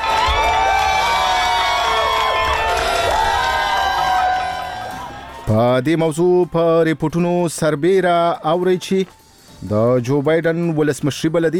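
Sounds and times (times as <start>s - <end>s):
high whoops and shouts from a crowd in America: 0.0s - 5.5s
crowd in America cheering announcement of Joe Biden's election win: 0.0s - 5.6s
speech: 5.5s - 11.5s.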